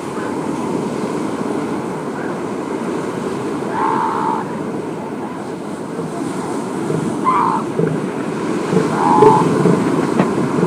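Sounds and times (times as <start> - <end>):
surf: 0.0 - 10.6
elephant seals rumbling and grunting in mating season: 3.6 - 4.6, 6.8 - 10.2
elephant seal nasal calls: 3.7 - 4.5, 7.0 - 7.9, 8.7 - 9.9.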